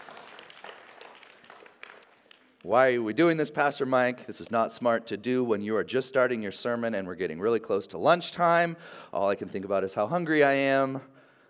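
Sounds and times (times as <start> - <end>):
church congregation clapping after a group activity: 0.0 - 2.8
speech: 2.6 - 11.1.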